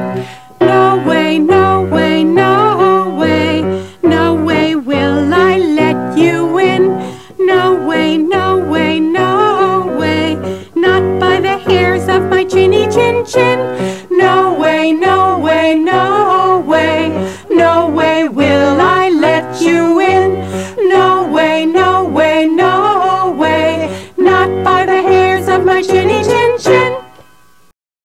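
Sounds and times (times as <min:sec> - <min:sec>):
person singing: 0:00.2 - 0:27.2.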